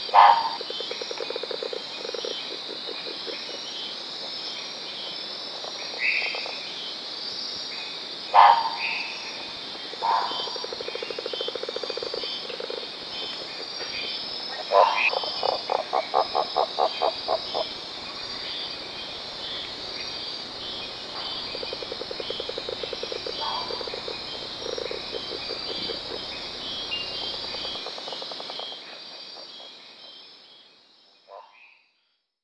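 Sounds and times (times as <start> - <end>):
Giant monkey frog clicking calls: 0.0 - 3.8, 9.9 - 29.8
insects humming: 0.0 - 31.8.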